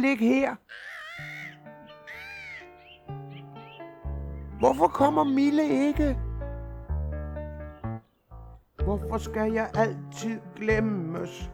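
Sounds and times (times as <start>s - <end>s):
speech: 0.0s - 1.3s, 4.6s - 6.2s, 8.9s - 11.5s
seagull crying: 0.7s - 4.0s.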